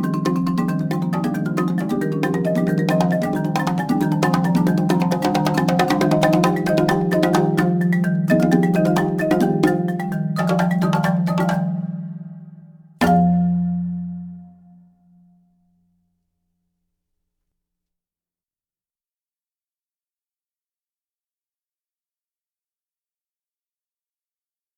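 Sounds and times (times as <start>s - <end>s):
percussion: 0.0s - 16.0s.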